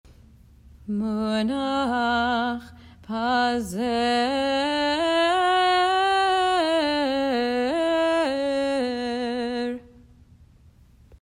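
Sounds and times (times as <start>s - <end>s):
munach pazer cantillation: 0.1s - 11.2s.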